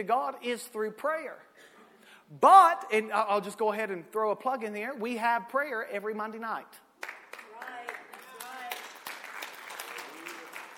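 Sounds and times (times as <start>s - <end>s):
speech: 0.0s - 1.7s, 2.3s - 6.8s
scattered audience applause: 7.0s - 10.7s.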